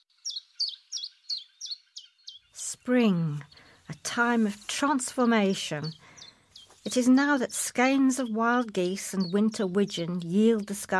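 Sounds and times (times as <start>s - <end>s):
chiffchaff singing: 2.6s - 10.9s
speech: 2.9s - 6.1s, 6.9s - 10.9s.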